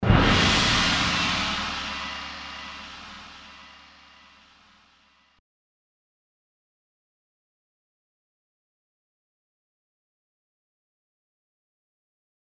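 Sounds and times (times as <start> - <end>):
gong: 0.0 - 5.4.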